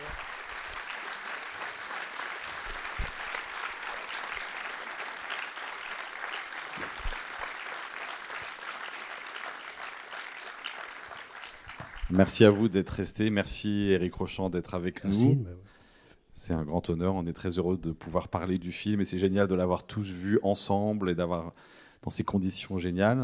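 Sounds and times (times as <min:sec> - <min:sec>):
audience applause: 0:00.0 - 0:12.7
speech: 0:12.1 - 0:15.7, 0:16.4 - 0:23.2.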